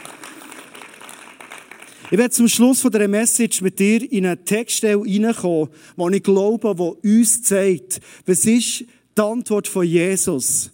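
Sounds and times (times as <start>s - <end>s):
audience clapping: 0.0s - 2.7s
speech: 2.1s - 10.7s.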